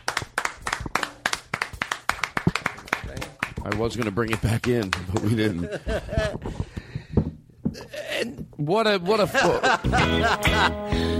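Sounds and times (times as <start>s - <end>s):
applause for a comedian at the end of a comedy show: 0.0s - 5.6s
speech: 3.6s - 6.7s, 8.2s - 11.1s
laughter: 5.0s - 6.7s, 9.0s - 10.9s.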